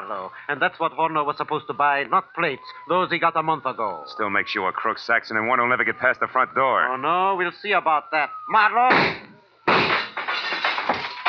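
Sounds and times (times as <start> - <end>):
speech: 0.1 - 9.3
gunshots in the dark: 8.9 - 11.2.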